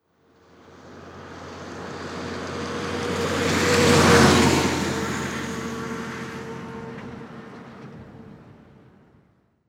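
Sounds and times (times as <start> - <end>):
diesel truck passing quickly: 0.4 - 9.2.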